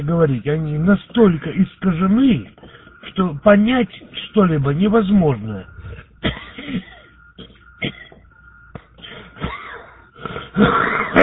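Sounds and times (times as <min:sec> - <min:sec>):
speech: 0:00.0 - 0:06.4, 0:10.6 - 0:11.2
man coughing: 0:06.0 - 0:11.2.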